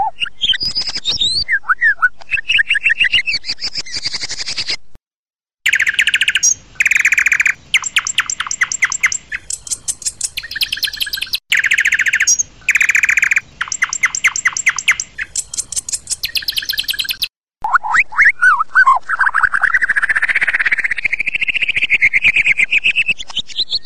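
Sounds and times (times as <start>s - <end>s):
white-rumped shama singing whistled notes, chattering and trills: 0.0s - 4.8s, 5.7s - 23.8s.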